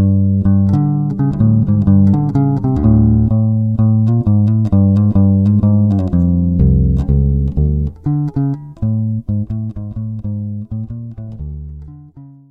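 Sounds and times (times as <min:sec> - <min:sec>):
bass tone sample: 0:00.0 - 0:12.4.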